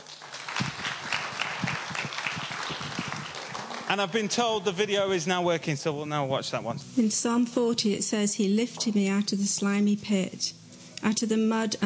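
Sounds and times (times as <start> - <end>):
audience applauding: 0.0 - 5.1
speech: 3.9 - 11.8.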